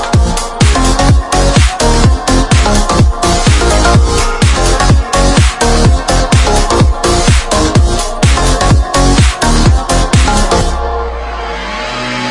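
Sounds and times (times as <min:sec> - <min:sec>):
future house music: 0:00.0 - 0:12.2.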